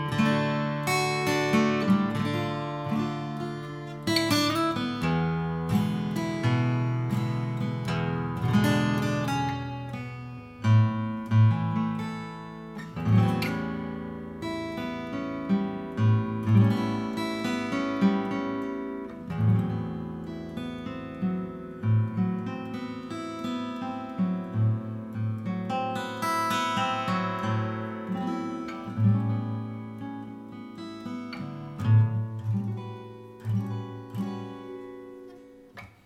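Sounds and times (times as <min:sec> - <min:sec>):
000 size double top flat top acoustic guitar: 0:00.0 - 0:36.0.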